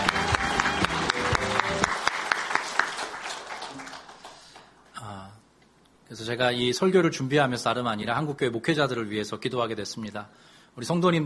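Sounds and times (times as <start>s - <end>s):
audience applause: 0.0s - 4.8s
speech: 6.3s - 11.2s.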